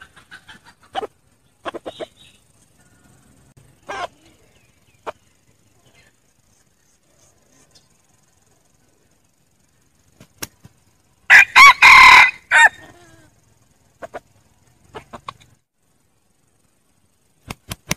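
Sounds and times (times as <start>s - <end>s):
red junglefowl crowing: 11.3s - 13.2s.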